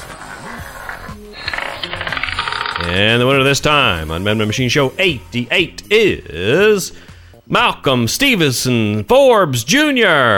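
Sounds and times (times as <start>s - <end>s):
roulette wheel spinning: 0.0s - 4.1s
speech: 2.8s - 10.3s.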